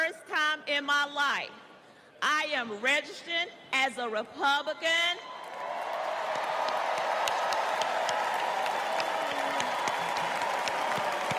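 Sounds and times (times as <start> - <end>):
speech: 0.1 - 1.6, 2.2 - 5.3
long applause: 5.4 - 11.3.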